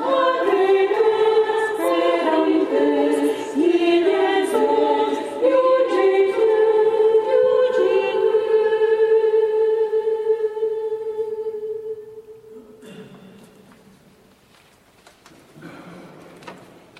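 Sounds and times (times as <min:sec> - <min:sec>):
choir singing: 0:00.0 - 0:12.6.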